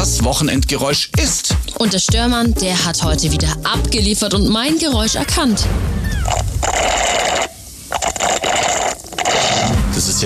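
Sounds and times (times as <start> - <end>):
speech: 0.1 - 7.5
slurping iced coffee through a straw: 6.3 - 9.8.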